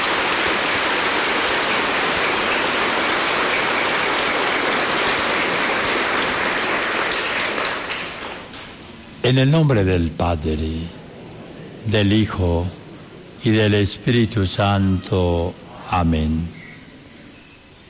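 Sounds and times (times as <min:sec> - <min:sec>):
audience applause: 0:00.0 - 0:08.8
speech: 0:09.3 - 0:11.0, 0:11.8 - 0:12.8, 0:13.4 - 0:16.6.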